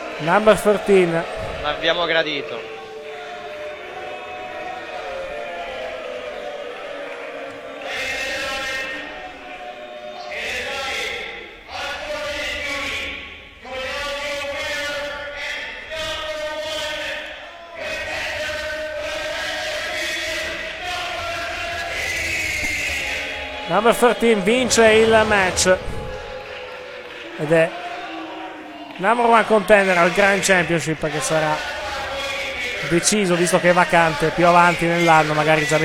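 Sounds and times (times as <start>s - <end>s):
crowd whistling at a wrestler: 0.0s - 30.6s
crowd booing a wrestler at a wrestling event: 0.0s - 35.8s
speech: 0.2s - 2.8s, 23.7s - 26.0s, 27.4s - 27.8s, 29.0s - 31.7s, 32.8s - 35.8s.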